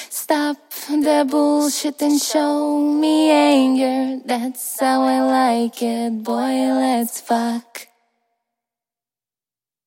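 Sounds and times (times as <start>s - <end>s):
pop rap singing: 0.0s - 7.8s.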